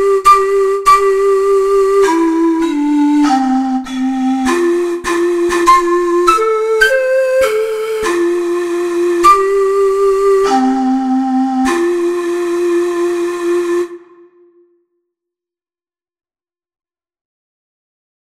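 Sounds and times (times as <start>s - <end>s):
four-hole ocarina melody: 0.0s - 14.8s.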